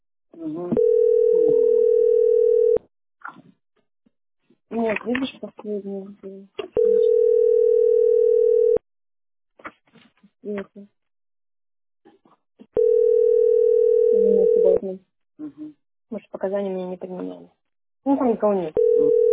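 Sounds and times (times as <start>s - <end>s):
speech: 0.4s - 0.9s, 4.8s - 7.2s, 10.4s - 11.0s, 14.2s - 19.2s
automated telephone line tones: 0.7s - 2.8s, 6.8s - 8.8s, 12.8s - 14.8s, 18.8s - 19.3s.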